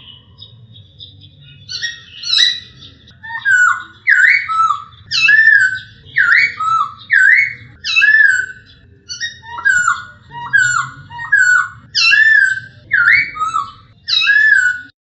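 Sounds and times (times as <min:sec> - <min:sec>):
Hwamei laughingthrush singing: 0:00.0 - 0:15.0.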